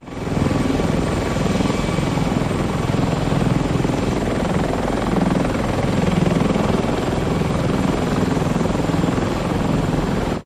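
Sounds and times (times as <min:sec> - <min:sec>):
CH-53 Super Stallion helicopter idling on tarmac: 0:00.0 - 0:10.4.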